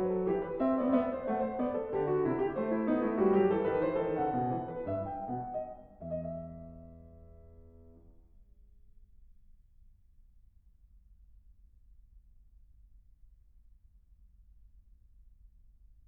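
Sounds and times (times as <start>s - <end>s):
prelude piece in E minor: 0.0s - 8.1s.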